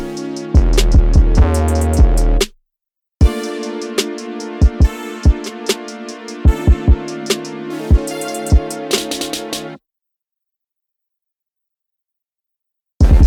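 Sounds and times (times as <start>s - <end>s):
instrumental music: 0.0s - 2.4s, 3.2s - 9.8s.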